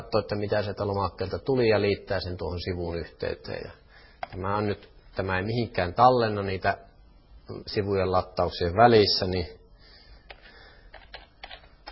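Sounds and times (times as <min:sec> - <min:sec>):
speech: 0:00.0 - 0:06.9, 0:07.5 - 0:09.6
faint low hum: 0:00.0 - 0:11.9
keystrokes on a computer keyboard entering text into a web form: 0:04.2 - 0:04.4, 0:10.3 - 0:11.9.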